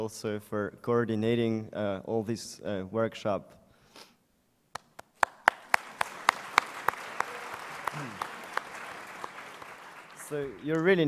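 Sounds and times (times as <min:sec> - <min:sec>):
speech: 0:00.0 - 0:04.1, 0:08.0 - 0:08.2, 0:10.3 - 0:11.0
audience applause: 0:05.2 - 0:11.0.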